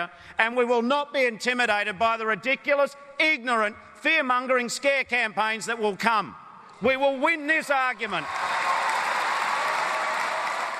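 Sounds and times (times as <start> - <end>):
speech: 0.0 - 8.6
Labor Party conference delegates applauding a speech: 8.0 - 10.7.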